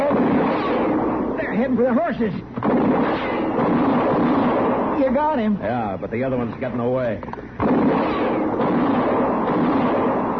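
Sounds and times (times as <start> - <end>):
gunshot: 0.0 - 1.3, 2.6 - 5.3, 7.6 - 10.3
speech: 1.6 - 4.0, 5.0 - 8.3.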